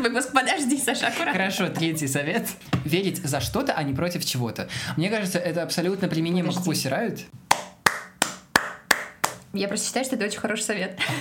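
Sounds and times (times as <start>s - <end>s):
speech: 0.0s - 7.4s, 9.5s - 11.1s
laughter: 1.0s - 2.5s
hands clapping: 7.5s - 9.5s.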